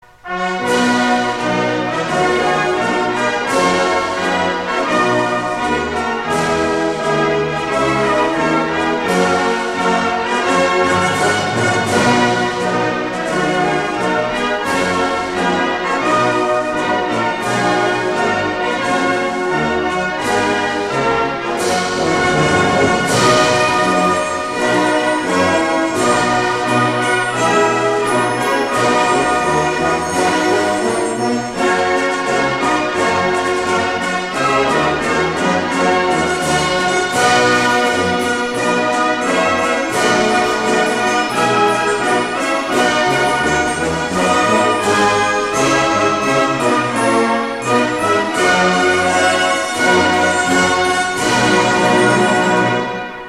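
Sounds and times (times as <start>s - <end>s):
anthem music: 0.2s - 53.2s.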